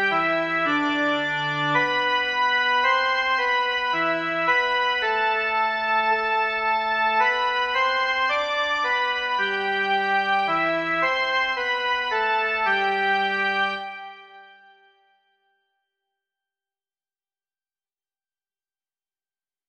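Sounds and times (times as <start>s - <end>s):
prayer melody: 0.0s - 15.5s.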